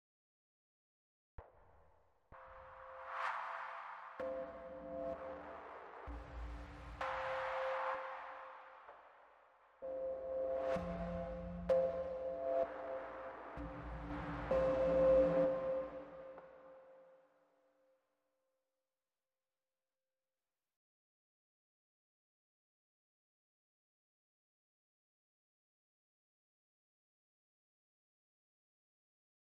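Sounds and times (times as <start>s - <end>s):
synthesizers: 2.7s - 9.2s, 9.8s - 17.1s.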